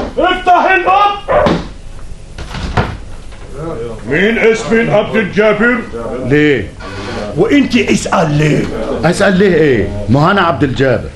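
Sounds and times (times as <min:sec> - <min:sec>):
speech: 0:00.2 - 0:01.0, 0:04.1 - 0:11.1
door being opened: 0:02.4 - 0:03.0.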